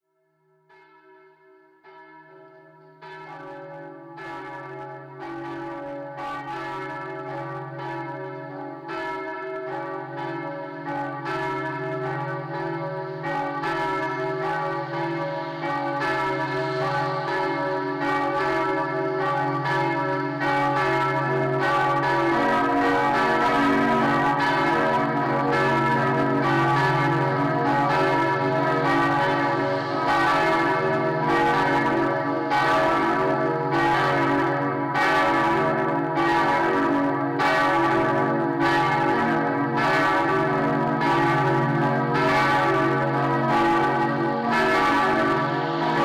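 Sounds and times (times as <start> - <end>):
Lutheran church bells ringing: 0.6 - 46.0.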